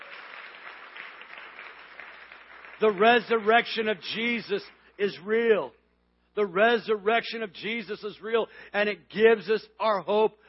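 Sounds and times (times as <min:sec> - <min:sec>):
audience clapping hands: 0:00.0 - 0:03.9
speech: 0:02.8 - 0:05.8, 0:06.4 - 0:10.4.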